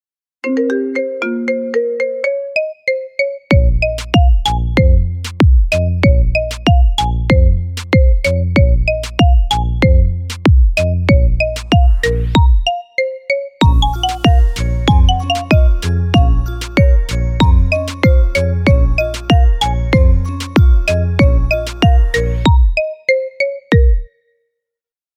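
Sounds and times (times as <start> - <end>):
marimba remix: 0.4 - 24.1.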